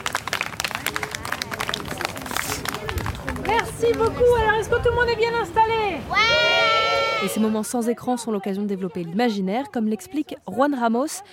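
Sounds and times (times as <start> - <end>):
audience applauding: 0.0 - 4.2
speech: 3.6 - 11.3.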